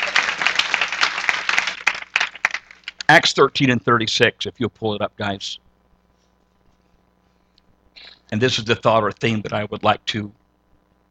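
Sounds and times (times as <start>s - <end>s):
audience hand clapping: 0.0s - 3.1s
speech: 3.1s - 5.6s, 8.3s - 10.4s.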